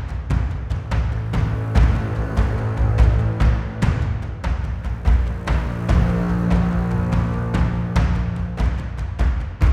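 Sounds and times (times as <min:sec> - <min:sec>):
combat music: 0:00.2 - 0:09.6.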